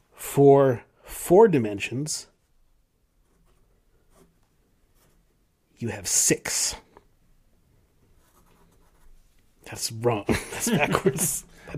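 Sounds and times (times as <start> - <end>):
speech: 0.4 - 2.3, 5.8 - 6.8, 9.7 - 11.7
number being drawn by hand on a writing surface: 3.2 - 5.4, 8.0 - 9.5
laughter: 10.3 - 11.5.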